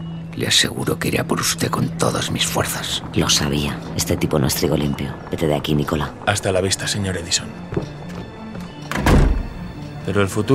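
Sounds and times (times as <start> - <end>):
speech: 0.4 - 8.2, 10.1 - 10.5
office door slamming: 8.8 - 9.7.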